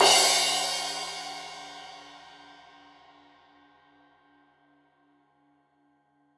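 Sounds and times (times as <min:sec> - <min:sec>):
15 inch crash cymbal edge hit: 0:00.0 - 0:02.5.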